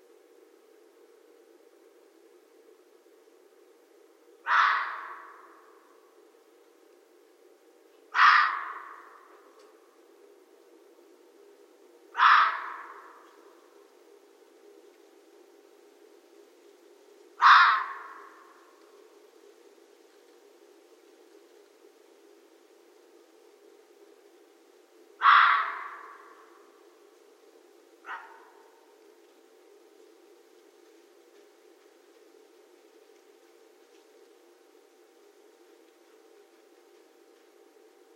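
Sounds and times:
red fox barking: 0:04.4 - 0:05.7, 0:08.1 - 0:09.5, 0:12.1 - 0:13.5, 0:17.4 - 0:18.6, 0:25.2 - 0:26.7, 0:28.0 - 0:29.0.

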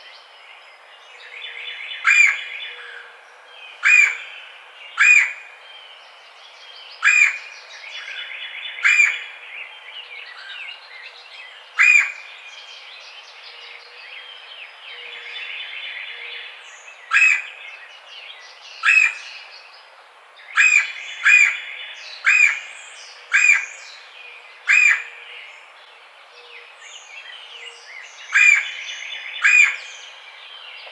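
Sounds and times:
birds twittering: 0:01.2 - 0:30.9
red-bellied woodpecker kwirr calls: 0:02.0 - 0:02.5, 0:03.8 - 0:04.3, 0:05.0 - 0:05.4, 0:07.0 - 0:07.5, 0:08.8 - 0:09.2, 0:11.8 - 0:12.3, 0:17.1 - 0:17.6, 0:18.8 - 0:19.3, 0:20.6 - 0:22.7, 0:23.3 - 0:23.8, 0:24.7 - 0:25.2, 0:28.3 - 0:28.8, 0:29.4 - 0:30.0.

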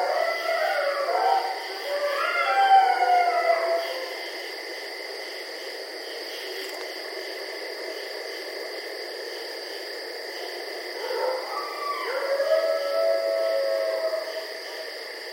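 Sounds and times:
coyotes howling: 0:00.0 - 0:04.3, 0:10.9 - 0:15.0.

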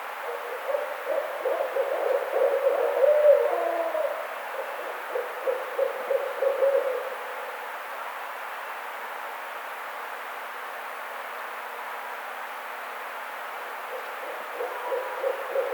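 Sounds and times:
barred owl hooting: 0:00.2 - 0:07.2, 0:13.9 - 0:15.7.

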